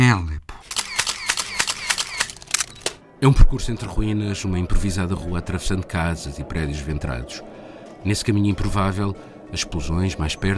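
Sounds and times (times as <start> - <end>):
speech: 0.1 - 0.4, 3.2 - 10.5
camera shutter clicks: 0.7 - 3.0.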